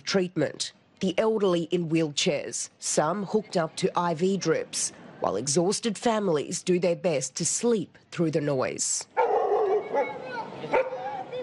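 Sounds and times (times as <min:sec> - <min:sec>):
speech: 0:00.1 - 0:09.2
dog barking: 0:09.2 - 0:11.4.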